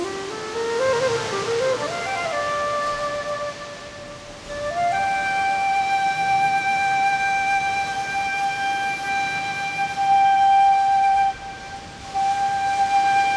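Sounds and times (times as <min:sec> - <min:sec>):
flute playing in a cave: 0:00.0 - 0:13.3.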